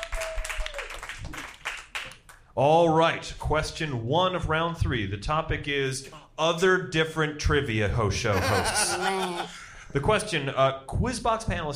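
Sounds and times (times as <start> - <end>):
audience applause: 0.0 - 2.0
speech: 2.6 - 11.7
laughter: 8.3 - 9.7.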